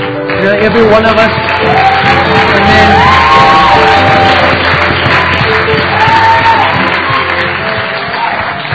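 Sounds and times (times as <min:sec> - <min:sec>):
audience applauding: 0:00.0 - 0:08.7
speech: 0:00.4 - 0:03.2
shouts and whoops: 0:01.6 - 0:04.6, 0:05.8 - 0:08.7.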